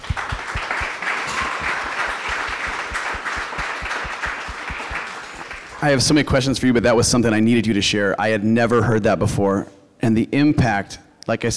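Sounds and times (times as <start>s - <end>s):
audience round of applause: 0.0s - 6.1s
speech: 5.8s - 11.5s.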